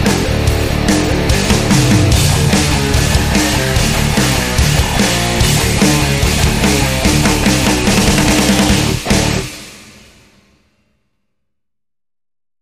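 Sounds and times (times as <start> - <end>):
energetic frenetic music: 0.0 - 9.9.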